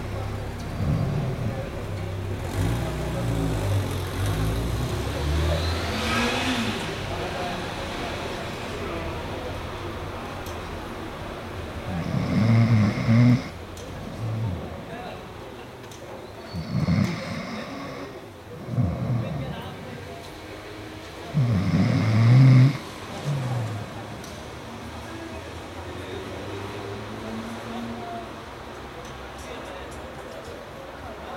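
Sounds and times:
city traffic rumble through an open window: 0:00.0 - 0:31.3
faint voices: 0:00.0 - 0:31.3
vehicles passing: 0:00.0 - 0:31.3.

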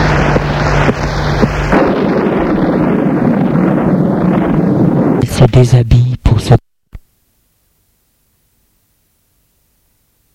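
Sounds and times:
rain in a thunderstorm: 0:00.0 - 0:05.2
low droning rumble: 0:00.0 - 0:06.1
wind in a thunderstorm: 0:00.0 - 0:10.3
speech: 0:05.5 - 0:06.6.

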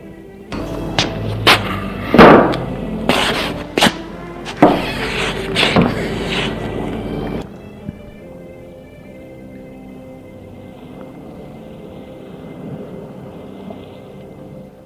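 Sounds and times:
chair scraping across the floor: 0:00.6 - 0:07.4
wooden thumps and creaks of someone settling onto a chair: 0:00.6 - 0:08.2.

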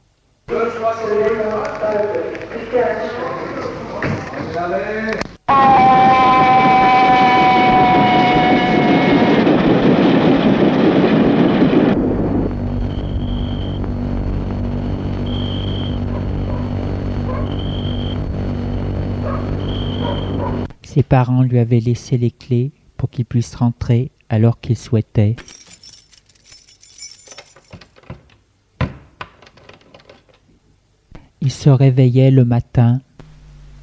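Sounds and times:
speech: 0:00.5 - 0:03.7, 0:04.5 - 0:06.3, 0:21.0 - 0:25.6, 0:31.6 - 0:33.1
voices: 0:00.5 - 0:05.3
low drone: 0:05.6 - 0:20.7
train rumbling on rails: 0:05.8 - 0:14.0
high sliding metallic whine: 0:10.6 - 0:20.7
short high beeps: 0:12.8 - 0:13.8, 0:15.2 - 0:16.0, 0:19.6 - 0:20.4.

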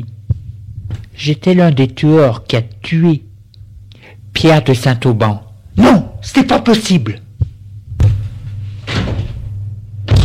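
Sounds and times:
steady low hum: 0:00.0 - 0:10.2
speech: 0:01.2 - 0:03.3, 0:04.4 - 0:07.2
heavy thuds and rattles: 0:07.4 - 0:10.2
door slamming shut: 0:08.8 - 0:10.2.

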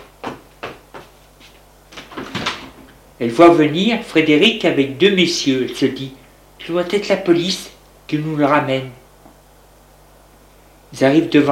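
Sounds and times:
house door being opened: 0:02.0 - 0:02.9
speech: 0:03.2 - 0:09.0, 0:10.9 - 0:11.5.

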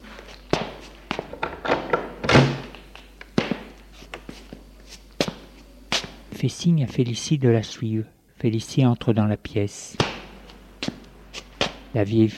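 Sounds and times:
footsteps: 0:00.0 - 0:01.4, 0:02.6 - 0:06.2, 0:10.0 - 0:11.9
door being opened: 0:01.3 - 0:02.8
speech: 0:06.4 - 0:10.1, 0:11.9 - 0:12.3.

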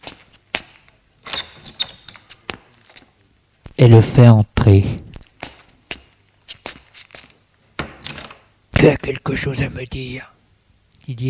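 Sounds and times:
door opening: 0:01.2 - 0:02.3, 0:07.8 - 0:08.5
squeaking hinges: 0:01.2 - 0:02.4
speech: 0:03.8 - 0:05.1, 0:08.8 - 0:10.4, 0:11.1 - 0:11.2.

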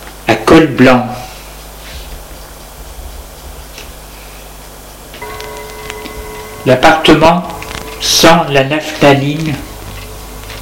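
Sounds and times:
steady low hum and hiss: 0:00.0 - 0:10.6
speech: 0:00.5 - 0:01.3, 0:06.6 - 0:09.7
clock chiming: 0:05.2 - 0:10.6.

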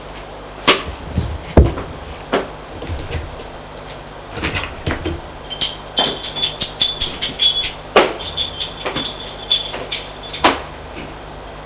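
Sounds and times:
apartment door being opened: 0:00.9 - 0:10.6.

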